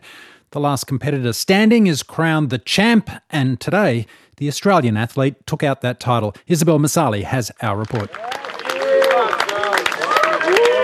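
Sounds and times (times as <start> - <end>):
speech: 0.5 - 8.5
crowd cheering for the last runner of an ultramarathon: 7.8 - 10.8.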